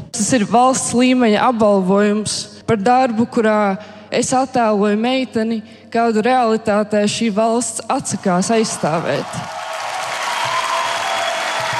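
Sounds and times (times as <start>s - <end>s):
speech: 0.2s - 9.6s
standing ovation applause from a large crowd in a hall: 8.5s - 11.7s.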